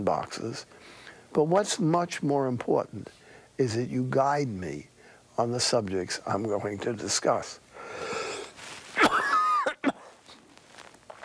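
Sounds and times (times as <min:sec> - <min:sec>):
speech: 0:00.0 - 0:08.1
raspy wheezing breath: 0:07.8 - 0:08.6
person coughing: 0:09.0 - 0:10.2.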